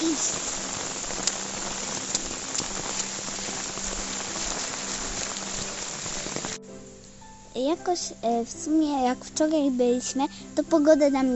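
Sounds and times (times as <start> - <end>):
heavy downpour of rain: 0.0 - 6.6
speech: 7.6 - 11.3.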